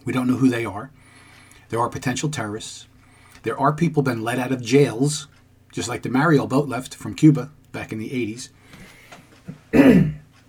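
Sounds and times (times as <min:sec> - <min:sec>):
speech: 0:00.0 - 0:01.0, 0:01.7 - 0:08.8, 0:09.8 - 0:10.2
person coughing: 0:09.7 - 0:10.3.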